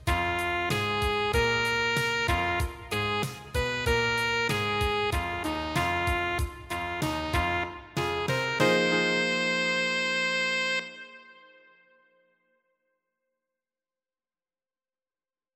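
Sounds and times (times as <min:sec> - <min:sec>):
playalong bass: 0:00.0 - 0:11.1.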